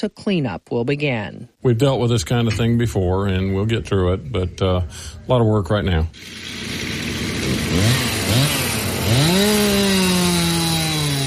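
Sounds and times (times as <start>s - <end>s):
speech: 0.0s - 6.9s, 7.7s - 9.8s
chainsaw cutting fallen trees: 6.2s - 11.2s.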